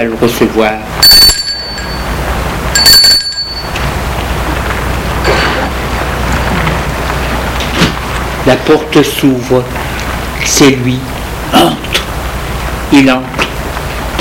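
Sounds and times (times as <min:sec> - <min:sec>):
speech: 0:00.0 - 0:01.1, 0:08.4 - 0:09.9, 0:10.5 - 0:12.0, 0:12.9 - 0:13.3
steady rushing noise: 0:00.8 - 0:14.1
doorbell ringing: 0:01.0 - 0:04.0.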